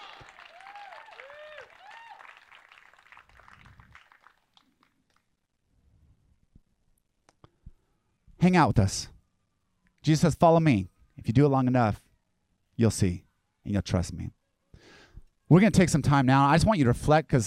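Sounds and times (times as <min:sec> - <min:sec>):
audience whoops: 0:00.0 - 0:04.1
audience applause: 0:00.0 - 0:04.8
speech: 0:08.4 - 0:09.1, 0:10.0 - 0:12.0, 0:12.8 - 0:14.4, 0:15.5 - 0:17.4.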